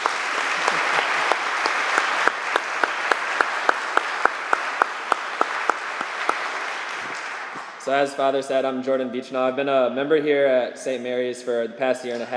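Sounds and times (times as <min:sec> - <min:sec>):
audience applause: 0:00.0 - 0:07.9
speech: 0:07.9 - 0:12.3.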